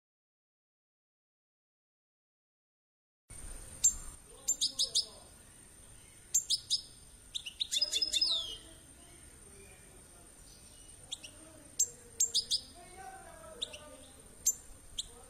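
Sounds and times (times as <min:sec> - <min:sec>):
finch chirping: 0:03.7 - 0:15.2.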